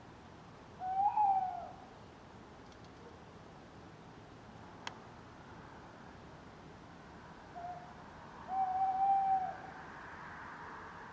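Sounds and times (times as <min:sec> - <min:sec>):
male tawny owl hooting: 0:00.8 - 0:01.8, 0:08.5 - 0:09.7.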